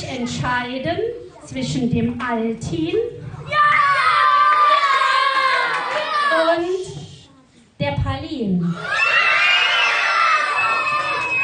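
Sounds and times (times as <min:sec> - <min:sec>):
speech: 0:00.1 - 0:03.6, 0:07.8 - 0:09.1
schoolchildren screaming with joy at an election result: 0:03.5 - 0:06.4, 0:08.7 - 0:11.4.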